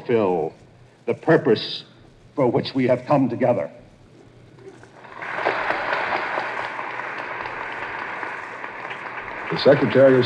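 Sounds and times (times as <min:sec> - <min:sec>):
speech: 0:00.1 - 0:03.8, 0:09.5 - 0:10.2
conference audience applause: 0:05.0 - 0:10.2.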